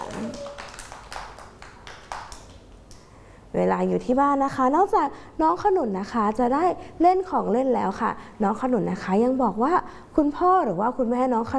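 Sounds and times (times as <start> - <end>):
children clapping hands: 0.0 - 3.1
speech: 3.5 - 11.5.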